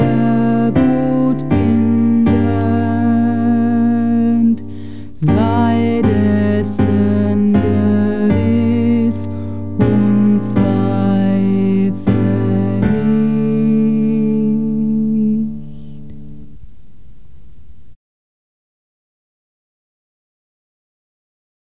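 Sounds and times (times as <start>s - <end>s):
tenor singing in German: 0.0s - 16.2s.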